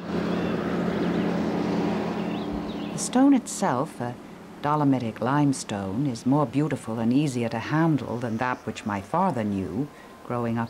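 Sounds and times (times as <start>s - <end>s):
red lorry engine rumbling while hauling limestone blocks across a quarry: 0.0s - 10.6s
windy broadband hiss: 0.0s - 10.6s
speech: 3.0s - 10.6s.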